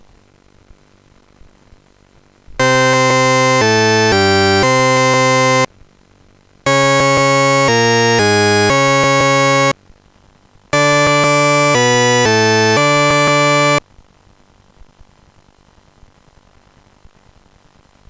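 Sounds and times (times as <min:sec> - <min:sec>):
tune: 0:02.6 - 0:05.7, 0:06.7 - 0:09.7, 0:10.8 - 0:13.8.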